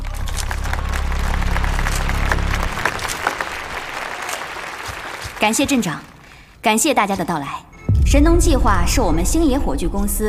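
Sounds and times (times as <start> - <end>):
warm applause: 0.0 - 6.6
speech: 5.4 - 10.2.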